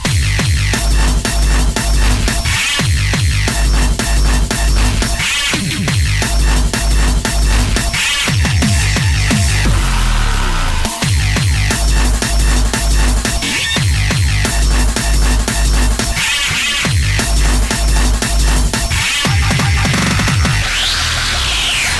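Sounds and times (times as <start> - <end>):
mega hard electronic dance music: 0.0 - 21.9.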